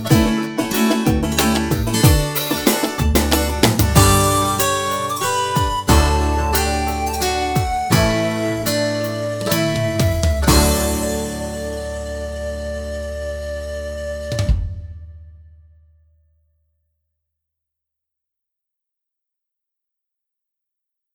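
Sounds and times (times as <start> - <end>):
slow French folk song: 0.0 - 14.5.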